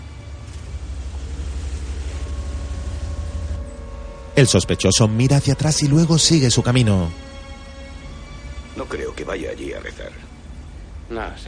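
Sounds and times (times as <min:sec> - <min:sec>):
car pulling away and creeping slowly in a cemetery: 0:00.0 - 0:11.4
speech: 0:04.4 - 0:07.3, 0:09.2 - 0:10.3, 0:11.1 - 0:11.4.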